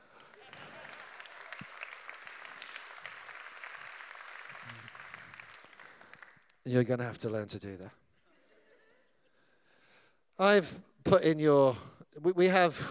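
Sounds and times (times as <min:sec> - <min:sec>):
audience clapping: 0:00.0 - 0:07.0
speech: 0:06.7 - 0:08.0, 0:10.4 - 0:12.9.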